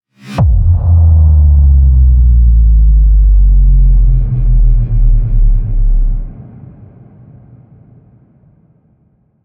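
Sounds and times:
cinematic intro music: 0:00.2 - 0:06.6.

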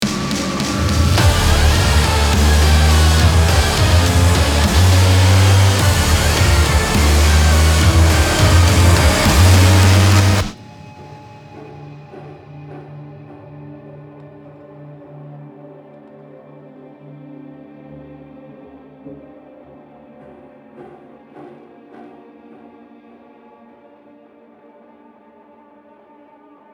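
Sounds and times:
victory jingle: 0:00.1 - 0:10.6.

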